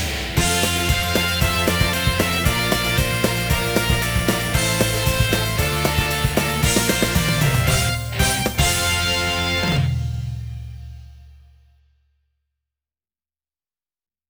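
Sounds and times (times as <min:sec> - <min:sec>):
karaoke singing: 0:00.0 - 0:09.9.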